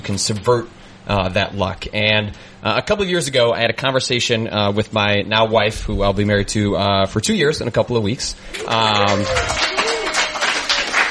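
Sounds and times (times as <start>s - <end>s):
speech: 0.0s - 9.6s
audience clapping: 8.5s - 11.0s.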